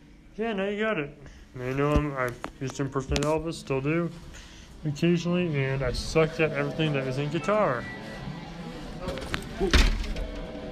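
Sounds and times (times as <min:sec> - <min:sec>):
speech: 0:00.4 - 0:08.0, 0:09.6 - 0:09.9
door shut too hard: 0:09.0 - 0:10.4.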